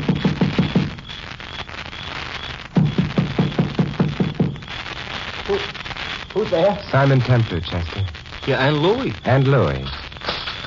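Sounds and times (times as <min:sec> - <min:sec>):
faint hiss: 0:00.0 - 0:10.6
knocking on a door: 0:02.8 - 0:04.6
speech: 0:06.4 - 0:10.1.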